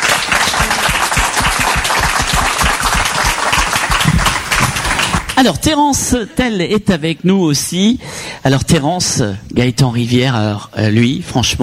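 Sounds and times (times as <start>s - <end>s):
audience applause: 0.0s - 5.4s
speech: 5.4s - 11.6s.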